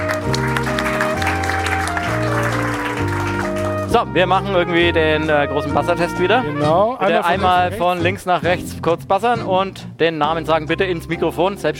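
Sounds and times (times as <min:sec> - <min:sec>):
audience applause: 0:00.0 - 0:03.9
speech: 0:03.9 - 0:11.7.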